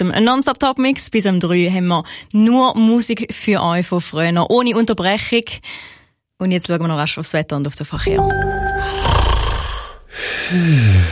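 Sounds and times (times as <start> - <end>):
speech: 0.0 - 9.3, 10.5 - 11.1
loud snoring: 9.0 - 11.1.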